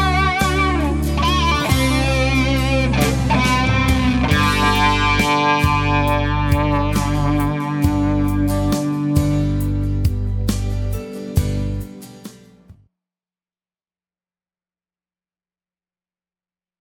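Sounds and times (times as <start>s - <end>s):
electric guitar solo through fuzz, tube driver, chorus and delay pedals: 0.0s - 10.4s
backing track: 0.0s - 12.8s.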